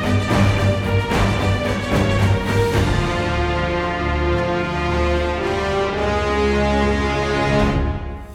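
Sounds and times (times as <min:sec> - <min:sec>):
boss background music: 0:00.0 - 0:08.3.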